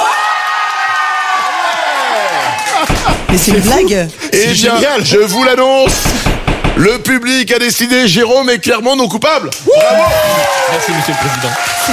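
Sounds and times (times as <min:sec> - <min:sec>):
studio audience cheering and shouting: 0:00.0 - 0:03.9, 0:09.6 - 0:11.9
speech: 0:03.3 - 0:11.9.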